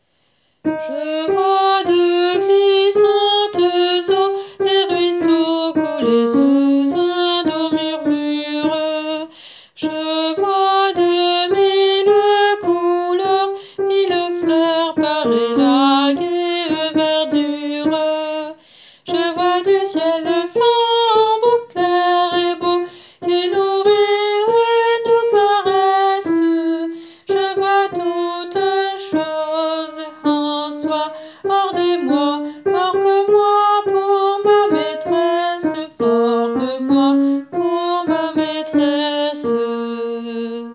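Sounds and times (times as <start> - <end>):
alto voice: 0.6 - 40.7.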